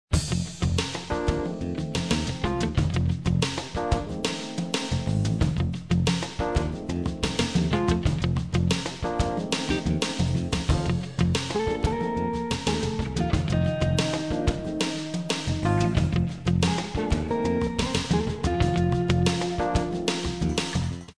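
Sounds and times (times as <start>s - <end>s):
light jazz music: 0.2s - 21.1s.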